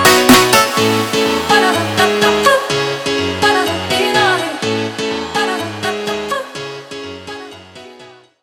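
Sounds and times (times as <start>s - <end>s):
slowed phonk music: 0.0s - 5.2s.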